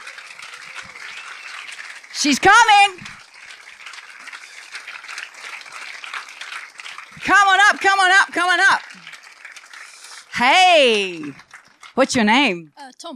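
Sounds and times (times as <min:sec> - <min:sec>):
audience applause: 0:00.0 - 0:12.4
speech: 0:02.2 - 0:03.1, 0:07.2 - 0:08.8, 0:10.4 - 0:11.4, 0:12.0 - 0:13.1.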